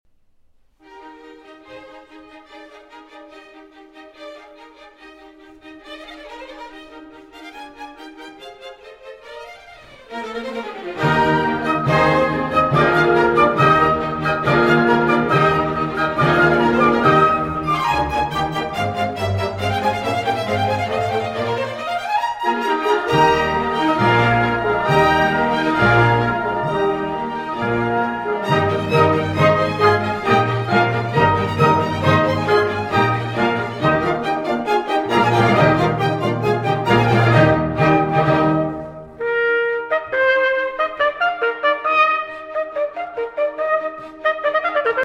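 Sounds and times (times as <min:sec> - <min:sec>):
trumpet concerto finale: 0:10.2 - 0:45.0.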